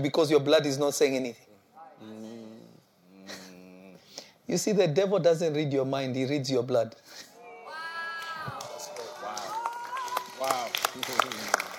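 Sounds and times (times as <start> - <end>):
speech: 0.0 - 2.2, 4.5 - 7.3
audience clapping: 8.2 - 11.7.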